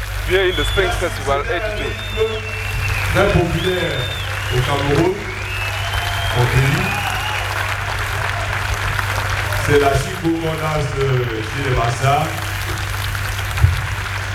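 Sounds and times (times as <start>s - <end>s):
crowd applauding: 0.0s - 14.3s
laughter: 0.0s - 14.3s
speech: 0.3s - 5.3s, 9.7s - 12.4s.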